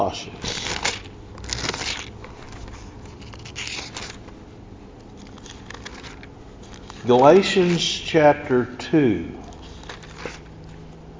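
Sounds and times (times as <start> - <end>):
speech: 0.0 - 0.4, 7.0 - 9.4
Bible pages being turned: 0.4 - 4.4, 5.1 - 8.1, 9.4 - 11.0.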